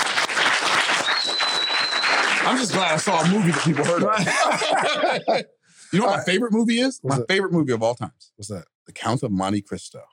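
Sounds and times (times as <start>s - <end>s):
round of applause: 0.0s - 4.7s
laughter: 2.5s - 6.4s
speech: 2.5s - 10.1s.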